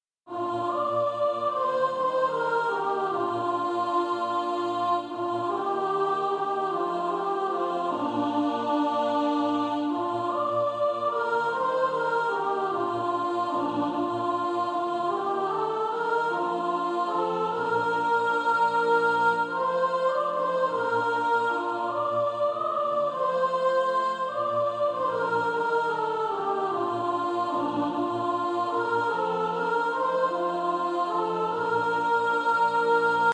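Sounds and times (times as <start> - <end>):
soprano singing: 0.3 - 33.3.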